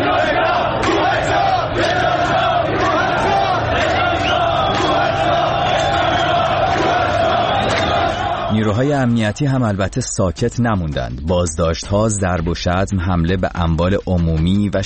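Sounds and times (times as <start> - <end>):
large protest crowd chanting a slogan: 0.0 - 8.8
speech: 8.8 - 14.8.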